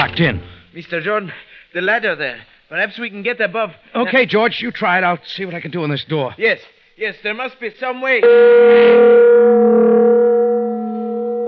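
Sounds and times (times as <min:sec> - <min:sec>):
speech: 0:00.0 - 0:10.0
huge tower bell of Dorchester Towers tolling: 0:08.2 - 0:11.4.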